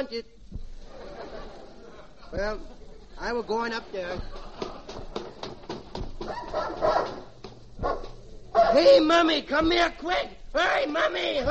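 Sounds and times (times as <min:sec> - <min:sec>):
speech: 0:00.0 - 0:00.4, 0:02.3 - 0:04.5, 0:08.7 - 0:11.4
laughter: 0:00.7 - 0:05.9
dog barking: 0:06.2 - 0:08.9.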